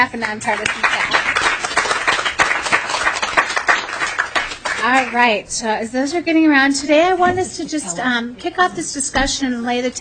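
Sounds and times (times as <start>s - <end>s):
speech: 0.0s - 1.5s, 4.8s - 9.9s
audience applause: 0.2s - 5.3s.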